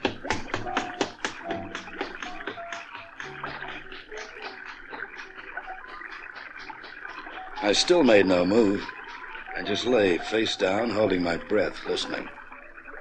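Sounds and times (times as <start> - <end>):
footsteps running, radio drama effect: 0.0 - 9.1
speech: 7.7 - 9.0, 9.7 - 12.4.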